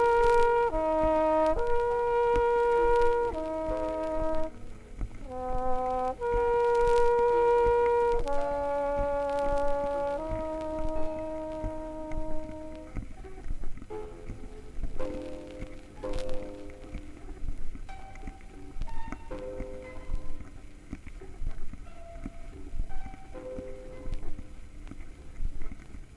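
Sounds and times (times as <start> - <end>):
harp and quintet playing a fugue: 0.0 - 13.1.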